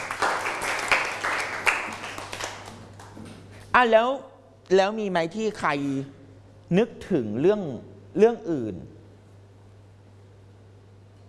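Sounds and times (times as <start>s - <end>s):
students clapping hands: 0.0s - 3.3s
speech: 3.8s - 9.0s.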